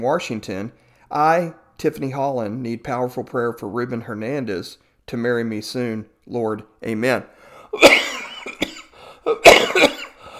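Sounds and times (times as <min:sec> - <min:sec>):
speech: 0:00.0 - 0:07.9
person coughing deeply: 0:07.8 - 0:10.3.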